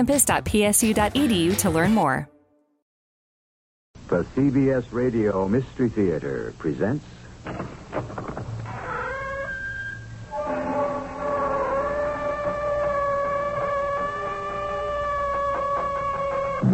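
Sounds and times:
speech: 0.0s - 2.3s, 4.1s - 8.3s
creaking door opening: 7.5s - 16.6s.

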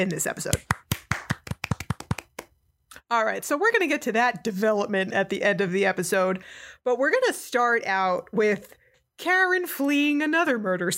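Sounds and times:
speech: 0.0s - 1.0s, 3.1s - 10.9s
golf clap: 0.5s - 2.5s.

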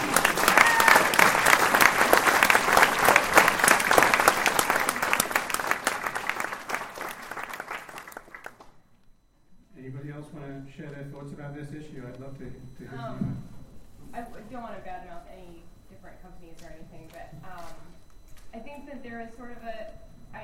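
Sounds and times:
applause: 0.0s - 8.8s
speech: 18.9s - 20.4s.

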